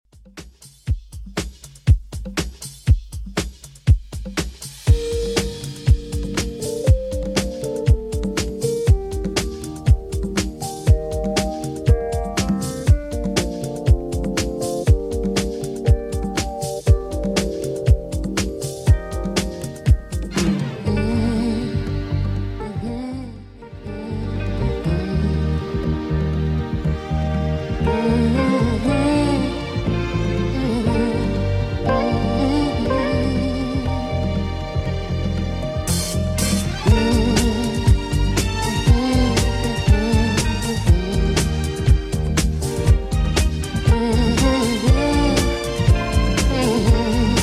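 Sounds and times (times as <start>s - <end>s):
70s-style music at 120 bpm: 0.2s - 47.4s.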